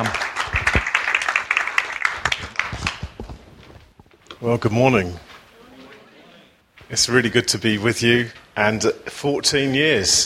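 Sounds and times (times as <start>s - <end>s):
speech: 0.0s - 0.2s, 4.4s - 5.3s, 6.9s - 10.2s
audience applause welcoming a speaker: 0.0s - 3.2s.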